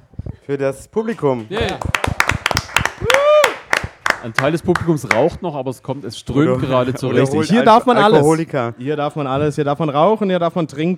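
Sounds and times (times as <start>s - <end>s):
speech: 0.5s - 2.1s, 4.2s - 10.9s
small group of hosts and guests clapping: 1.1s - 5.4s
person whooping: 2.9s - 3.7s.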